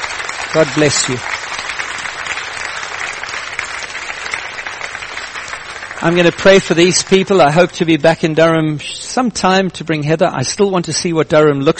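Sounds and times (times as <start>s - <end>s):
audience applause: 0.0s - 8.5s
speech: 0.5s - 1.3s, 6.0s - 11.7s.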